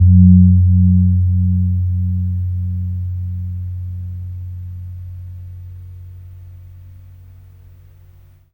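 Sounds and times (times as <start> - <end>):
kempur gong tuned to F3: 0.0 - 6.6.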